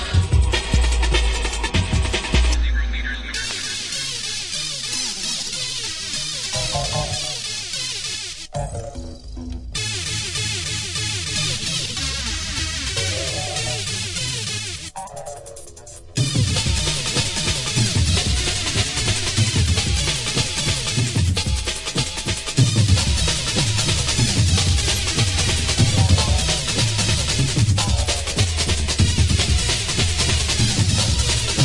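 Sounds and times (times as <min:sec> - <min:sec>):
drum and bass music: 0:00.0 - 0:31.6.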